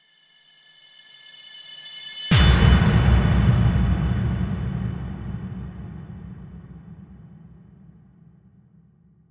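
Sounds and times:
slow rise and hit: 2.3s - 8.8s.

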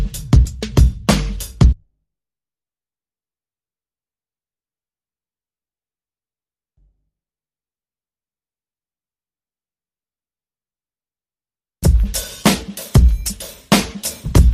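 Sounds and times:
drums: 0.0s - 1.8s, 11.8s - 14.5s.

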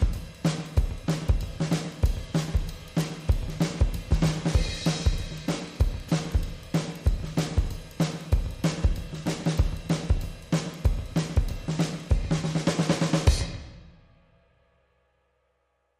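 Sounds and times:
clean drums: 0.0s - 14.6s.

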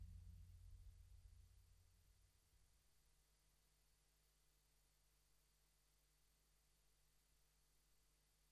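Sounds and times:
bass: 0.0s - 2.6s.

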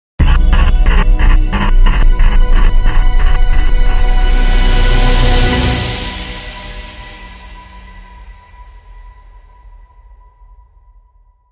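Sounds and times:
short dramatic music sting: 0.2s - 7.0s.

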